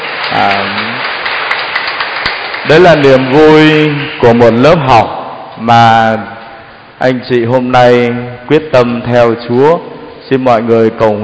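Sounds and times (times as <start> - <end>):
church congregation applauding catechumens who completed their course: 0.0 - 5.1
speech: 0.3 - 0.9, 2.6 - 6.3, 7.0 - 11.2.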